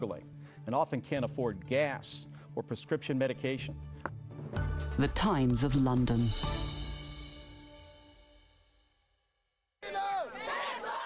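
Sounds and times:
speech: 0:00.0 - 0:06.6
crowd chanting in a city: 0:09.8 - 0:11.0.

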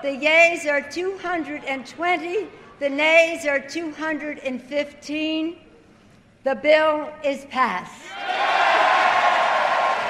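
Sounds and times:
speech: 0:00.0 - 0:05.6, 0:06.4 - 0:08.5
large crowd roaring and cheering in legislative chamber: 0:08.1 - 0:10.0.

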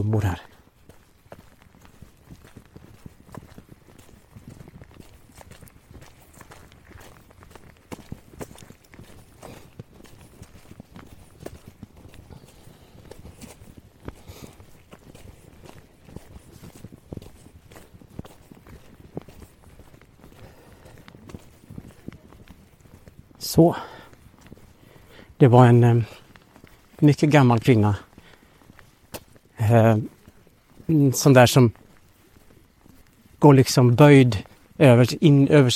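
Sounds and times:
speech: 0:00.0 - 0:00.5, 0:23.5 - 0:23.9, 0:25.4 - 0:26.2, 0:27.0 - 0:28.1, 0:29.7 - 0:30.1, 0:30.9 - 0:31.8, 0:33.4 - 0:35.7
footsteps of someone walking outdoors to catch up: 0:00.0 - 0:35.7.

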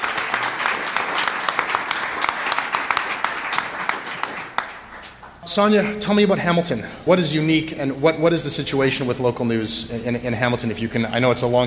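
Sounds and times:
audience applause: 0:00.0 - 0:05.4
speech: 0:05.5 - 0:11.6.

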